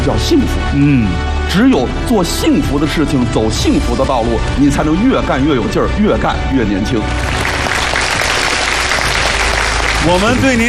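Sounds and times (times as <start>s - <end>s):
speech: 0.0s - 7.5s, 10.0s - 10.6s
audience applause honoring a revered elder guest: 7.0s - 10.6s.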